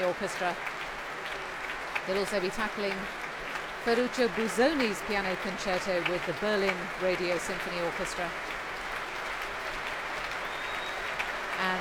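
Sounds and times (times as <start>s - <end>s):
speech: 0.0s - 0.8s, 2.1s - 3.2s, 3.8s - 8.6s, 11.6s - 11.8s
concert audience applauding a pianist after a piano concerto: 0.0s - 11.8s.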